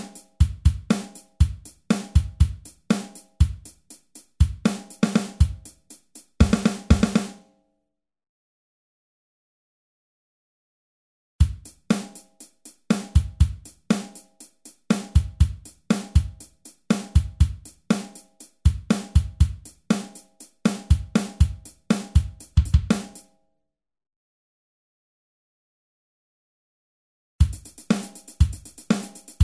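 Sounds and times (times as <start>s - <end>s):
drums: 0.0s - 7.4s, 11.4s - 23.3s, 27.4s - 29.4s.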